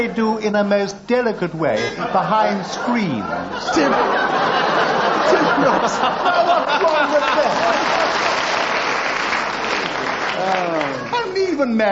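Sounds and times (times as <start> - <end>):
speech: 0.0 - 8.1, 10.4 - 11.8
laughter: 1.8 - 8.8, 9.8 - 11.8
audience applause: 4.8 - 11.3.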